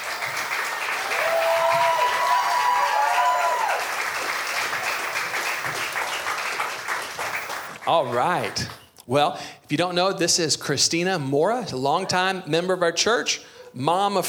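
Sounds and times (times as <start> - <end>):
audience applauding: 0.0 - 8.8
speech: 7.9 - 14.2.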